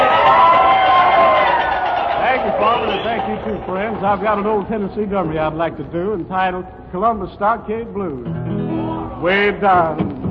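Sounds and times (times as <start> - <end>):
audience cheering and applauding a country singer at a Grand Ole Opry show: 0.0 - 4.8
speech: 3.6 - 10.1.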